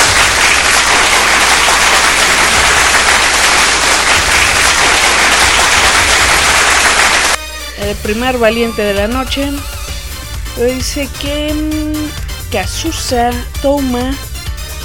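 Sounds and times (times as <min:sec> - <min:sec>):
applause: 0:00.0 - 0:07.4
speech: 0:07.9 - 0:09.8, 0:10.6 - 0:14.3.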